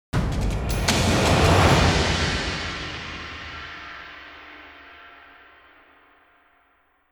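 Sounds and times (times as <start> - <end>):
combat intro music: 0.2 - 4.0.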